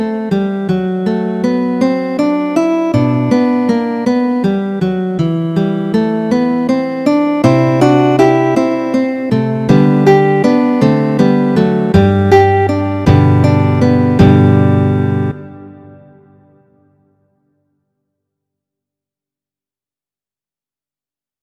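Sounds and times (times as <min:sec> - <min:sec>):
guitar duet: 0:00.0 - 0:17.0.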